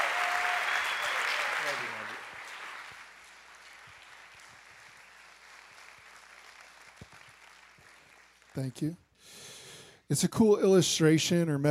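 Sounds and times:
brief cheer: 0.0s - 2.8s
soft audience applause welcoming Pastor Alex Reale: 0.0s - 9.0s
speech: 1.7s - 2.2s, 8.6s - 9.4s, 10.1s - 11.7s.

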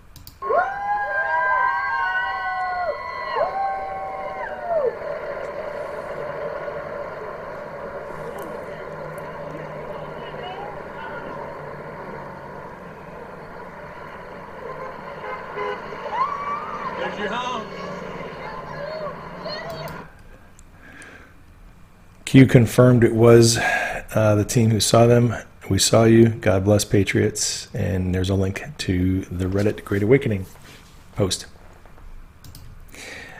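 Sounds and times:
steady traffic rumble: 1.6s - 20.6s
murmur of crowd voices: 3.2s - 20.1s
motorcade vehicle horns honking: 14.2s - 18.6s
speech: 22.3s - 31.5s.

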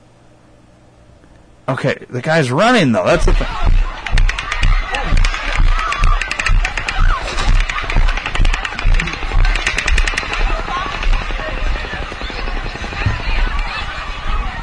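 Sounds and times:
speech: 1.7s - 3.8s
rapid gunfire in a video: 3.7s - 14.4s.

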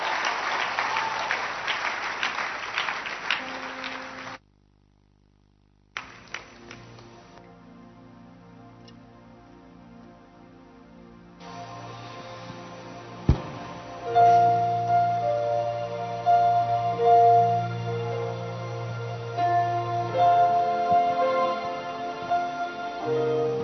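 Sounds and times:
audience clapping hands: 0.0s - 4.4s, 5.9s - 7.4s
steady low hum: 4.3s - 23.6s.

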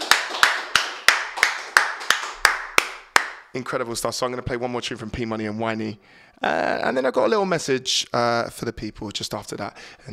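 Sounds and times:
studio guests clapping: 0.0s - 3.5s
speech: 3.6s - 10.1s.

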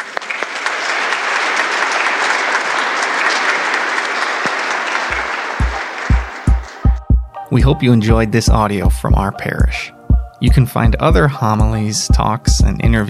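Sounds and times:
crowd applauding: 0.0s - 8.2s
low thumps: 6.9s - 7.4s, 8.4s - 13.0s
speech: 7.5s - 13.0s.

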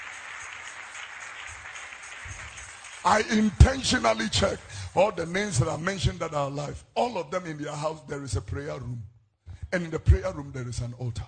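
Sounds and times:
audience clapping: 0.0s - 5.8s
speech: 3.0s - 9.1s, 9.7s - 11.2s.

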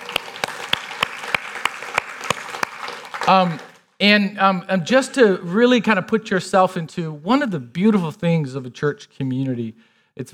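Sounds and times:
hand clapping: 0.0s - 3.9s
speech: 3.3s - 10.3s.

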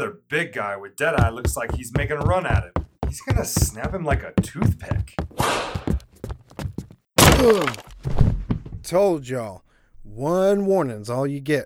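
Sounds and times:
speech: 0.0s - 5.9s, 7.4s - 8.3s, 8.9s - 11.6s
dull thumps: 1.2s - 8.9s
splintering crash of man face-planting into a table: 7.2s - 8.4s.

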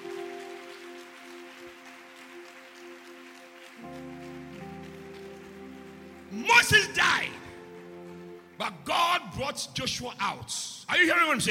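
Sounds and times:
audience clapping hands: 0.0s - 9.2s
speech: 6.3s - 7.4s, 8.7s - 11.4s.

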